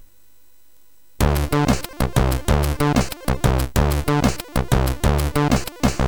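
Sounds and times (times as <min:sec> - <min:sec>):
MOS 6581R2 SID chip music: 0:01.2 - 0:06.0.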